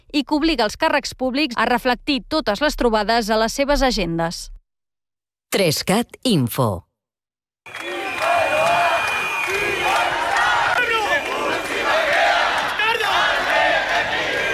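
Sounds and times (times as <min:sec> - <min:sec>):
speech: 0:00.1 - 0:04.6, 0:05.5 - 0:06.9
protest crowd shouting chants: 0:07.7 - 0:14.5.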